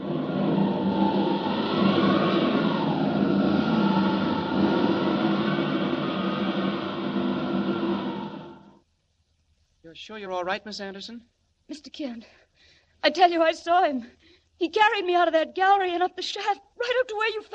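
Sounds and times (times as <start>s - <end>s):
mine-shaft explosion rumbling roar: 0.0s - 8.8s
speech: 10.0s - 12.4s, 13.0s - 17.5s.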